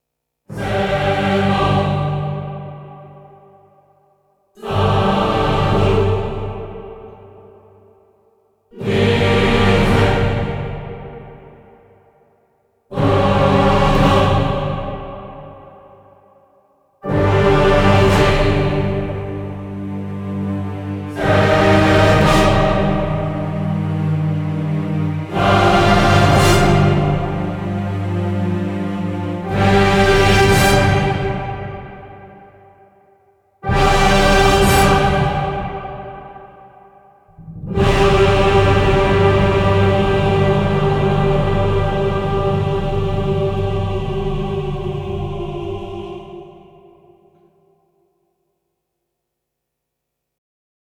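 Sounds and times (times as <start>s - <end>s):
choir singing: 0.5s - 3.8s, 4.6s - 7.9s, 8.7s - 12.1s, 12.9s - 16.4s, 17.0s - 47.7s.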